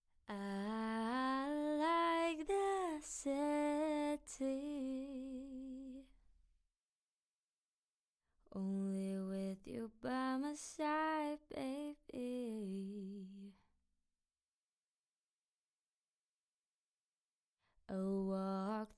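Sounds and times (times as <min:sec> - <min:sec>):
a cappella pop singing in C major: 0:00.3 - 0:06.1, 0:08.5 - 0:13.6, 0:17.9 - 0:18.9.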